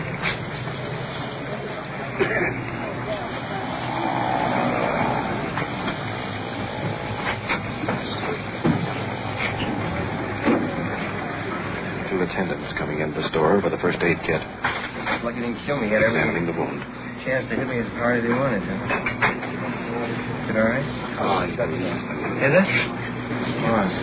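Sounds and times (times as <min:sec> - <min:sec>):
ambulance engine rumbling as it rolls in: 0:00.0 - 0:24.0
speech: 0:02.2 - 0:02.6, 0:15.4 - 0:19.2, 0:20.5 - 0:24.0
knocks and clunks: 0:06.8 - 0:11.1.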